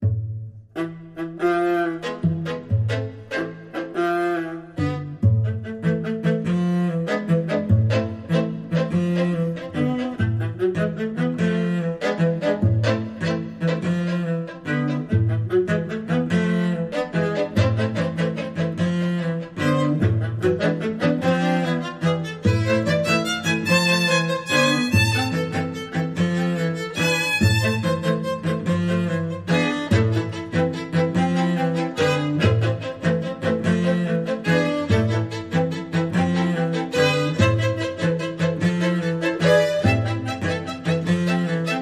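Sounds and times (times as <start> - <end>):
spiccato strings: 0.0 - 41.8.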